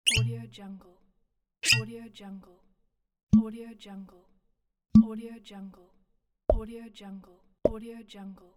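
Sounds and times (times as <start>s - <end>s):
bottle uncorking: 0.1s - 0.4s, 1.6s - 1.9s.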